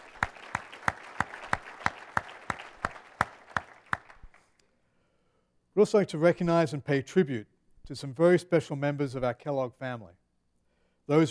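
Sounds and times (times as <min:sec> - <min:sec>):
rhythmic audience applause: 0:00.0 - 0:04.6
speech: 0:05.8 - 0:10.2, 0:11.1 - 0:11.2.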